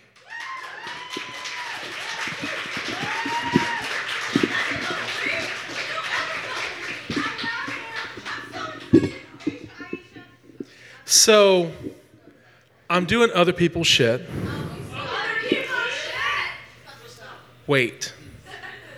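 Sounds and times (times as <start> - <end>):
open mic poetry night audience clapping: 0.0 - 10.9
lively voices in the room: 0.0 - 18.9
laughter: 0.6 - 12.4, 14.3 - 17.3, 18.1 - 18.9
speech: 11.2 - 11.9, 13.0 - 14.4, 17.7 - 18.2.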